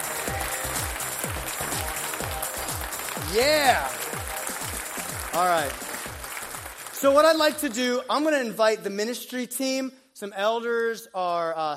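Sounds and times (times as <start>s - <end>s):
crowd clapping: 0.0s - 7.9s
speech: 3.3s - 4.2s, 5.3s - 5.8s, 7.0s - 11.7s.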